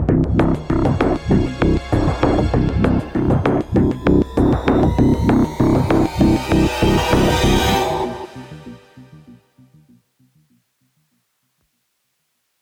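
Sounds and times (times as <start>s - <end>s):
tension music: 0.1s - 9.4s.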